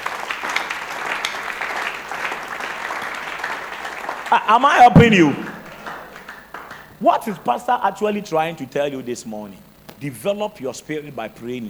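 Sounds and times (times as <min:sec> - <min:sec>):
audience clapping: 0:00.0 - 0:07.6
speech: 0:04.3 - 0:05.5, 0:07.0 - 0:11.6.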